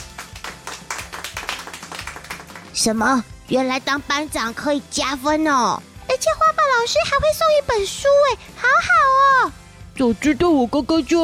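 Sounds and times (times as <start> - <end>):
group clapping: 0.0 - 2.8
speech: 2.8 - 11.2.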